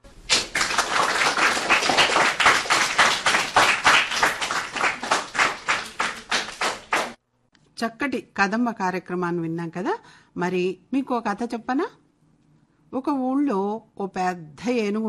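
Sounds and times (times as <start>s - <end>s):
rhythmic applause for the pupils of Paramita High School: 0.1s - 7.2s
speech: 7.8s - 12.0s, 12.9s - 15.0s.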